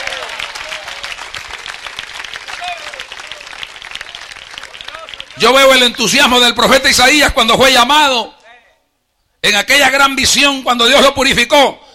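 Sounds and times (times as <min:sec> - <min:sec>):
audience applause: 0:00.0 - 0:06.0
speech: 0:05.4 - 0:08.4, 0:09.4 - 0:11.8.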